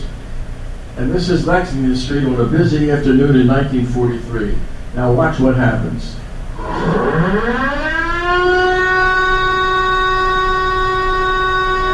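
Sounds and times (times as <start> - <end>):
speech: 1.0 - 7.6
air raid siren: 6.5 - 11.9.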